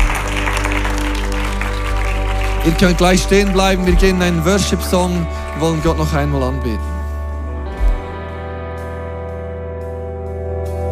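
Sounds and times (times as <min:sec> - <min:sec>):
audience applause: 0:00.0 - 0:06.8
sustained low keyboard or organ tones: 0:00.0 - 0:10.9
speech: 0:02.6 - 0:06.9.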